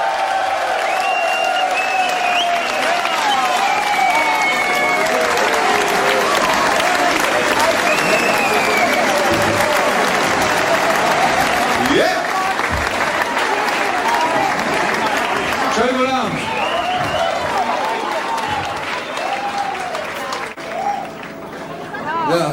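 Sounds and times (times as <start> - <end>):
cheering voices: 0.0 - 22.3
loud sustained audience applause: 0.0 - 22.5
whistles: 0.8 - 5.4, 7.7 - 9.6, 16.3 - 19.7.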